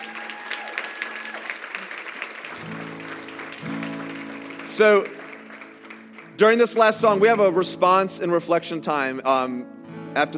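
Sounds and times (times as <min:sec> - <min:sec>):
audience clapping: 0:00.0 - 0:07.4
speech: 0:04.8 - 0:05.2, 0:06.4 - 0:10.3.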